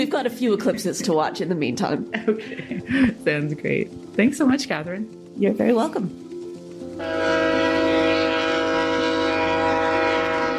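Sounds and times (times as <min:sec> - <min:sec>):
speech: 0:00.0 - 0:06.2, 0:07.0 - 0:07.4
passenger train rumble: 0:00.0 - 0:10.5
laughter: 0:01.9 - 0:03.3
passenger train horn blast: 0:06.9 - 0:10.5.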